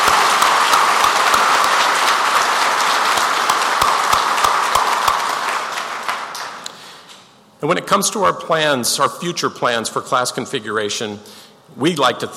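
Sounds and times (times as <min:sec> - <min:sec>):
audience applause: 0:00.0 - 0:06.7
speech: 0:07.6 - 0:12.3.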